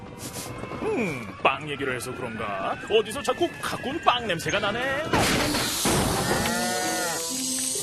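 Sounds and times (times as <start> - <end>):
speech: 0.9 - 6.6
cows mooing: 6.2 - 7.3.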